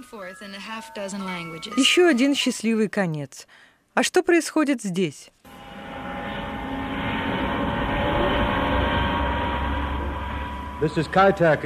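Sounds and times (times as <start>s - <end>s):
speech: 0.0s - 5.4s, 10.8s - 11.6s
aircraft engine rumble at Kai Tak Airport in Hong Kong before departure: 5.5s - 11.6s.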